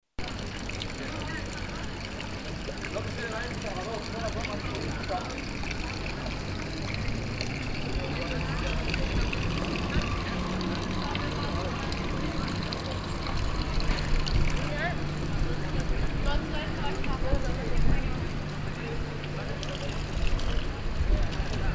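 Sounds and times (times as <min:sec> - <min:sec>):
fountain at Taubenmarkt: 0:00.2 - 0:21.7.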